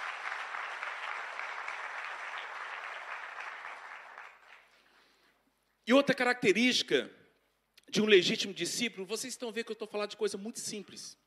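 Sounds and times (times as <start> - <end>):
audience applause: 0.0 - 4.8
speech: 5.9 - 7.2, 7.9 - 11.2.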